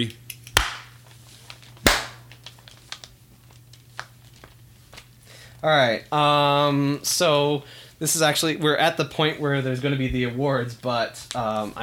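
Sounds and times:
speech: 0.0s - 0.2s, 5.6s - 11.8s
single hand clap: 0.6s - 0.9s, 1.9s - 2.2s.

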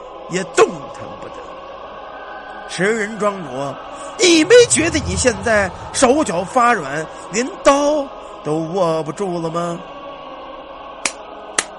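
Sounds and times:
speech: 0.3s - 1.6s, 2.7s - 9.9s
hand clapping: 11.0s - 11.7s.

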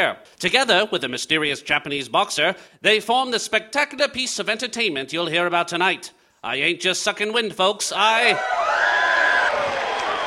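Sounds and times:
speech: 0.0s - 8.9s
stadium crowd cheering: 8.2s - 10.2s.

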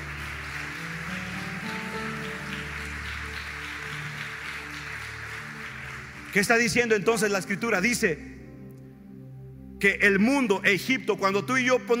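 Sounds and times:
audience applause: 0.0s - 7.1s
speech: 6.3s - 8.3s, 9.8s - 11.9s.

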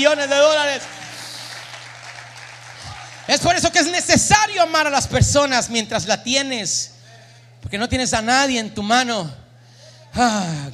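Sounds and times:
speech: 0.0s - 1.0s, 3.3s - 6.9s, 7.6s - 9.4s, 10.1s - 10.7s
audience applause: 0.0s - 3.9s.

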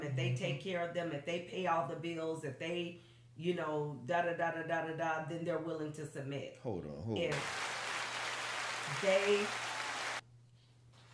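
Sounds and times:
speech: 0.1s - 7.7s, 8.9s - 9.7s
hand clapping: 7.3s - 10.2s.

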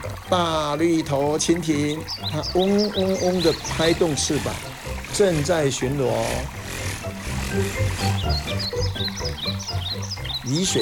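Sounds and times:
speech: 0.3s - 10.7s
chorus of low throaty frog croaks by a stream: 1.1s - 10.7s
thin high chirping calls: 2.0s - 5.1s, 6.5s - 10.7s.

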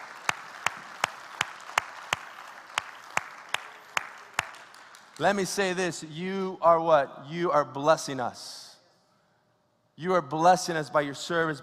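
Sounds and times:
audience applause: 0.0s - 5.3s
speech: 5.2s - 8.6s, 10.0s - 11.6s.

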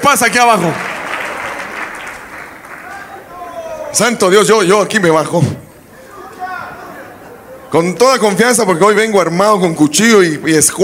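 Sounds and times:
speech: 0.0s - 0.9s, 3.9s - 5.6s, 7.7s - 10.8s
loud audience applause: 0.0s - 3.9s.

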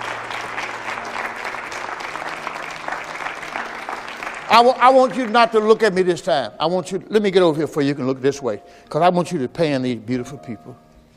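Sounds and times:
audience clapping hands: 0.0s - 6.4s
speech: 4.5s - 10.8s.

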